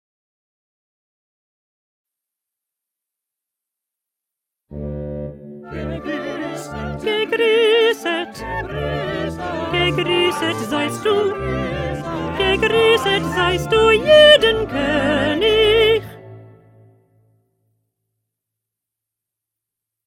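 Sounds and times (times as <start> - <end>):
second alto part: 4.7 - 17.4.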